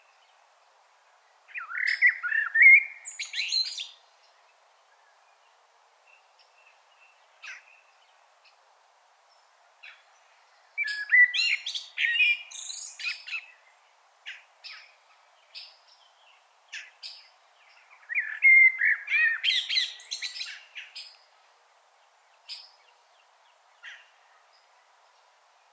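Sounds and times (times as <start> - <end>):
Common blackbird song: 0.0 - 8.6, 9.2 - 25.7.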